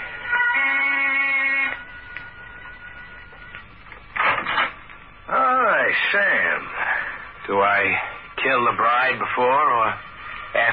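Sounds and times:
door buzzer ringing: 0:00.2 - 0:04.8
speech: 0:05.9 - 0:06.8, 0:07.5 - 0:10.7.

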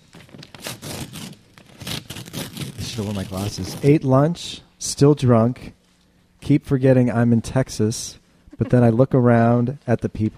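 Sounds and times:
paper envelope being ripped open: 0:00.0 - 0:04.0
speech: 0:03.0 - 0:05.8, 0:06.5 - 0:10.3.

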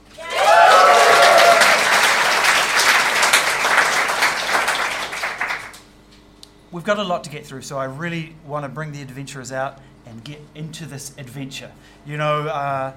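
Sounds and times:
person whooping: 0:00.1 - 0:02.2
applause from a comedy show audience: 0:00.1 - 0:05.8
speech: 0:06.9 - 0:12.9.

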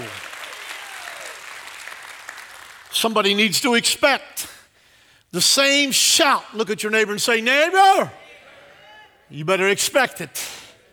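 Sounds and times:
audience hand clapping: 0:00.0 - 0:02.9
speech: 0:02.9 - 0:04.6, 0:05.3 - 0:08.2, 0:09.3 - 0:10.6.

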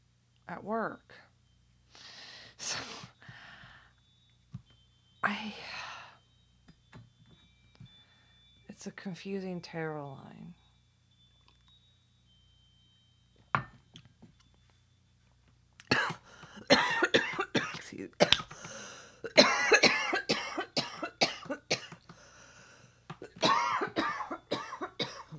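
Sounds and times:
speech: 0:00.5 - 0:01.2, 0:05.3 - 0:05.7, 0:08.8 - 0:10.6
choking coughs: 0:15.8 - 0:22.0, 0:23.2 - 0:25.3.

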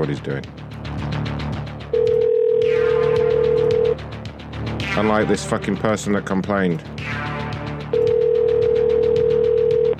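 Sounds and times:
speech: 0:00.0 - 0:01.2, 0:05.0 - 0:07.3
soft rhythmic background: 0:00.0 - 0:09.9
electronic telephone tone: 0:01.9 - 0:04.0, 0:08.0 - 0:09.9.

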